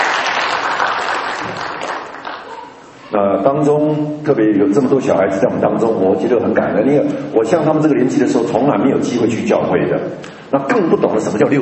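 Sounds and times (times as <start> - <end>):
audience applause: 0.0 - 2.7
speech: 3.1 - 11.6.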